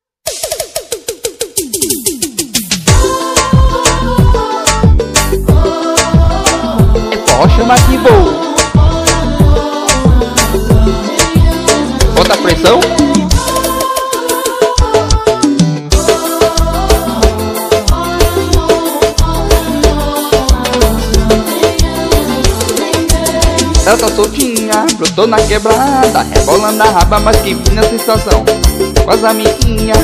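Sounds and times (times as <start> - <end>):
forró music: 0.3 - 30.0.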